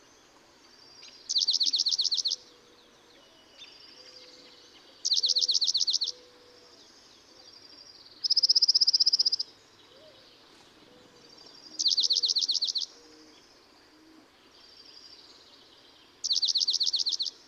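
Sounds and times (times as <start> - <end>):
dark-eyed junco trilled songs: 1.3 - 2.4, 5.0 - 6.3, 11.8 - 13.1, 16.2 - 17.3.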